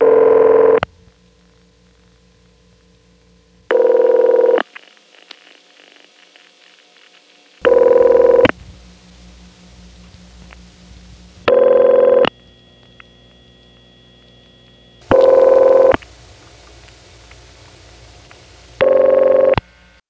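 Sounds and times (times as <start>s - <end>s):
Bell System PBX telephone ring buzzes: 0.0s - 0.8s, 3.7s - 4.6s, 7.6s - 8.5s, 11.5s - 12.9s, 14.9s - 16.0s, 18.8s - 19.6s
low electrical hum: 0.0s - 20.0s.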